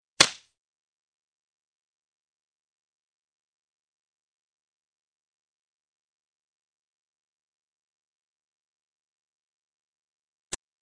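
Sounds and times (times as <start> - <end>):
fight sounds: 0.2 - 0.5.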